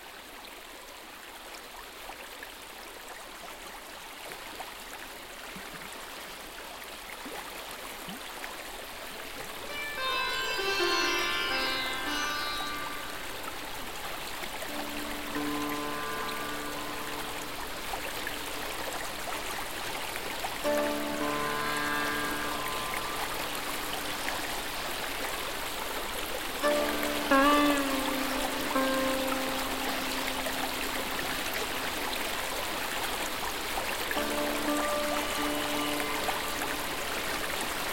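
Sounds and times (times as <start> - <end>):
babbling brook: 0.0 - 37.9
sitar music: 9.2 - 37.9.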